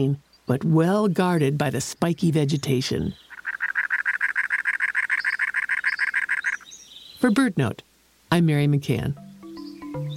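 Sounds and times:
speech: 0.0s - 3.2s, 7.2s - 9.2s
cactus wren's harsh raspy chugging call: 3.1s - 7.3s.

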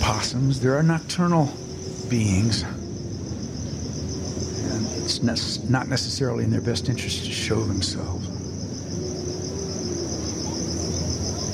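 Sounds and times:
insects singing in a forest at night: 0.0s - 11.5s
speech: 0.1s - 2.8s, 4.7s - 8.3s.

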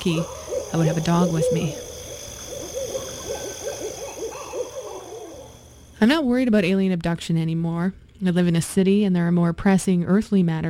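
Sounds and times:
speech: 0.0s - 1.9s, 6.0s - 10.6s
owl hooting: 0.0s - 6.0s.

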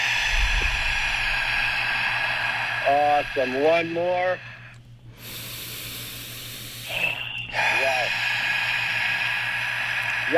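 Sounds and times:
deep breath through the nose: 0.0s - 10.3s
speech: 2.9s - 4.5s.

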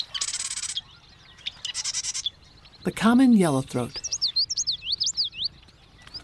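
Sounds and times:
marsh wren song: 0.0s - 6.2s
speech: 2.8s - 4.0s.

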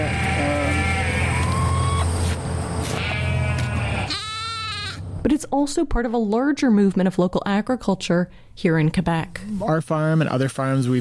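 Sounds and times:
sheep bleating: 0.0s - 2.0s, 3.0s - 5.0s
speech: 5.2s - 10.9s.

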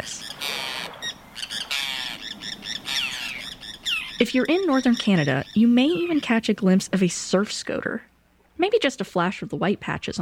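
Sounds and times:
Forster's tern harsh raspy squawking calls: 0.0s - 6.7s
speech: 4.2s - 10.2s.

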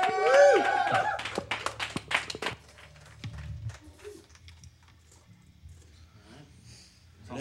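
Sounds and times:
small studio audience scattered applause: 0.0s - 4.9s.

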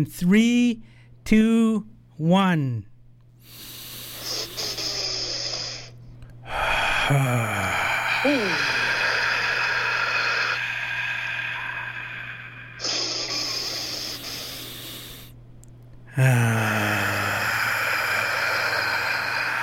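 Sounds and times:
speech: 0.0s - 2.9s, 7.1s - 8.8s, 16.2s - 17.3s
deep breaths taken in a breathing exercise: 0.8s - 1.2s, 3.4s - 15.4s, 16.1s - 19.6s
voiced sighs: 3.4s - 15.4s, 16.1s - 19.6s.

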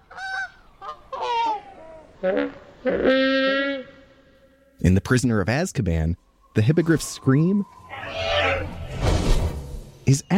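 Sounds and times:
slowed-down goose honks as Brachiosaurus call: 0.0s - 4.8s
speech: 2.2s - 3.6s, 4.8s - 8.8s, 10.1s - 10.3s.

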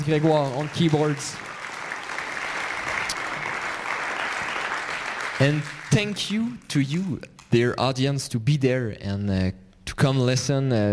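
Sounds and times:
speech: 0.0s - 1.5s, 5.4s - 10.9s
audience applause: 0.0s - 6.5s.

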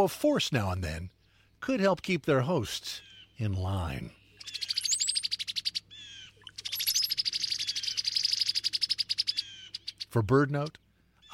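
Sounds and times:
speech: 0.0s - 4.7s, 10.1s - 11.3s
cowbird chattering calls: 3.0s - 11.3s
buzzy cowbird call: 4.1s - 11.3s.

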